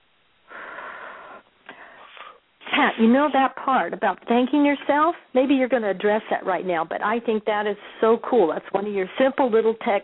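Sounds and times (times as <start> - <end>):
deep breath blown out slowly during a guided relaxation exercise: 0.5 - 2.4
speech: 2.8 - 10.0.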